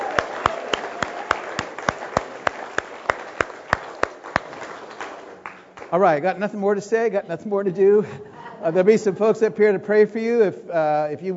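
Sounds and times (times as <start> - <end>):
applause and cheering: 0.0 - 6.1
speech: 5.9 - 11.3.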